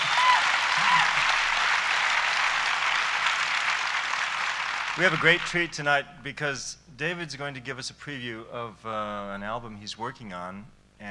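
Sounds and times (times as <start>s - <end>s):
audience applause: 0.0s - 5.8s
speech: 5.0s - 11.0s.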